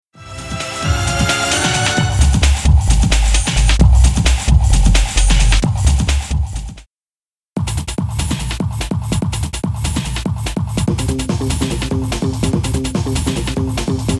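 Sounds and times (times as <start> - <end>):
music beat: 0.2 - 6.9, 7.6 - 14.1.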